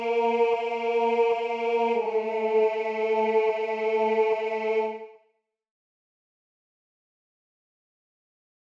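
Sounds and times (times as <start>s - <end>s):
tenor singing: 0.0s - 5.1s.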